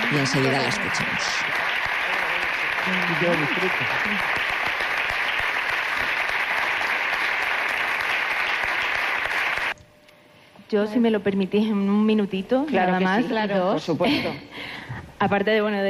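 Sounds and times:
theatre audience applauding: 0.0s - 9.8s
speech: 0.1s - 1.7s, 2.8s - 4.6s, 10.7s - 15.8s.

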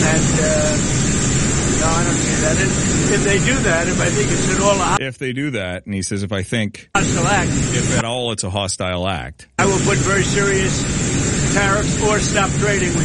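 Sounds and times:
jet engine roar: 0.0s - 5.0s, 7.0s - 8.0s, 9.6s - 13.0s
speech: 2.5s - 13.0s.

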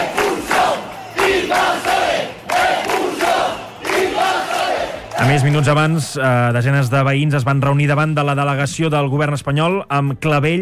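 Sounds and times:
protesters near a migrant settlement in Ceuta chanting a slogan: 0.0s - 5.6s
speech: 5.2s - 10.5s.

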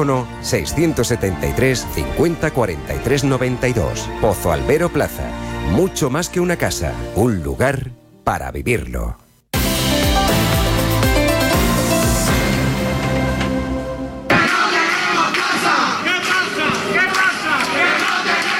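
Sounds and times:
speech: 0.0s - 9.2s
music: 0.0s - 18.5s
protest crowd in Jerez shouting and chanting over the housing problem: 14.3s - 18.5s.

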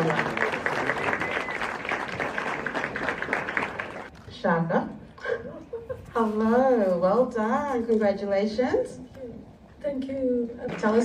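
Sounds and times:
speech: 0.0s - 0.4s, 4.4s - 4.9s, 6.2s - 9.1s, 9.8s - 11.0s
audience applause: 0.0s - 4.1s.

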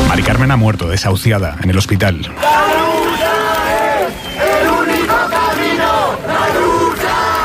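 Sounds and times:
speech: 0.2s - 2.8s
crowd in Madrid's Puerta del Sol shouting and chanting at night: 2.3s - 7.4s.

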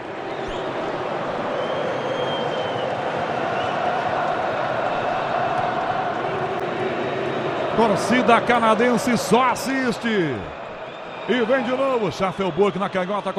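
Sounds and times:
Moroccan football fans chanting in a stadium: 0.0s - 9.2s
speech: 7.8s - 10.6s, 11.3s - 13.3s.

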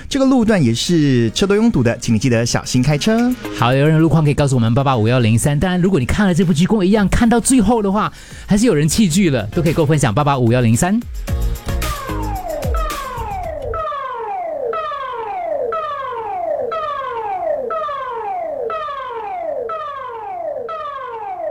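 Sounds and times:
speech: 0.1s - 11.7s
public warning system siren: 11.6s - 21.4s.

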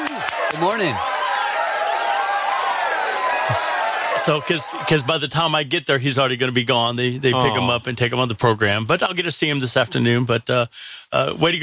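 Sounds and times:
crowd cheering in a radio studio: 0.0s - 5.8s
speech: 0.6s - 1.1s, 4.2s - 11.6s.

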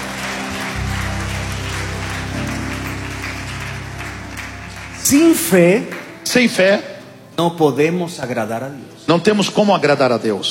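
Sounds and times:
audience applause: 0.0s - 6.8s
speech: 5.1s - 10.4s.

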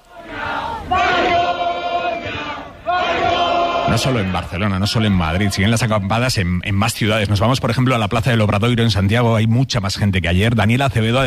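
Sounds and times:
protest crowd shouting chants: 0.0s - 5.9s
speech: 3.9s - 11.2s.

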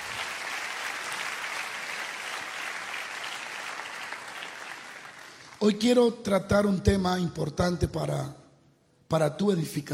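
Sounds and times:
audience applause: 0.0s - 5.6s
speech: 5.6s - 8.4s, 9.1s - 9.9s.

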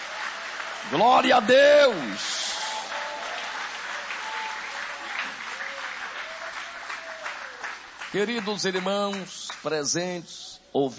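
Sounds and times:
audience applauding: 0.0s - 9.8s
speech: 0.8s - 2.3s, 8.1s - 10.9s.

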